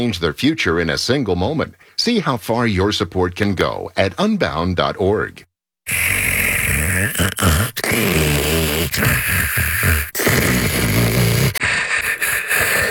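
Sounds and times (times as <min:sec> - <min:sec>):
speech: 0:00.0 - 0:06.2, 0:07.0 - 0:10.9
loud snoring: 0:05.9 - 0:12.8.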